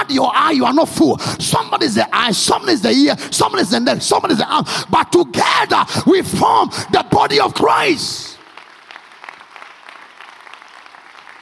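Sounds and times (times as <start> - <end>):
speech: 0.1 - 8.3
audience clapping: 7.7 - 11.4.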